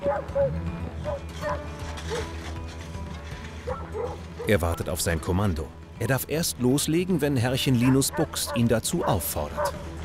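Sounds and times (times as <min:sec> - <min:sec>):
avalanche rescue dog barking in the Swiss Alps: 0:00.0 - 0:00.5, 0:03.7 - 0:04.5, 0:07.8 - 0:09.8
speech: 0:04.5 - 0:09.9.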